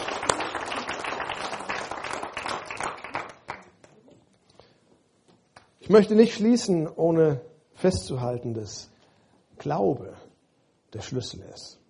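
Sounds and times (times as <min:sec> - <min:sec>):
audience applause: 0:00.0 - 0:03.8
speech: 0:05.9 - 0:08.9, 0:09.6 - 0:10.2, 0:10.9 - 0:11.8.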